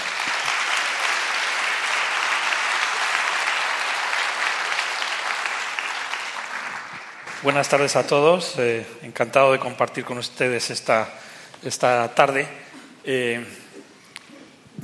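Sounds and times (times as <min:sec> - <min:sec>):
audience applause: 0:00.0 - 0:07.9
speech: 0:07.4 - 0:13.6.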